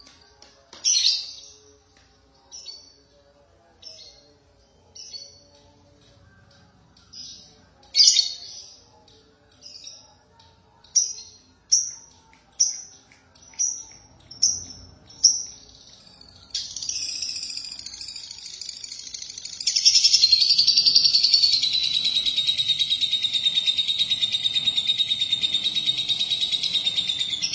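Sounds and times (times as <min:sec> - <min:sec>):
lovebird song: 0:11.0 - 0:27.5.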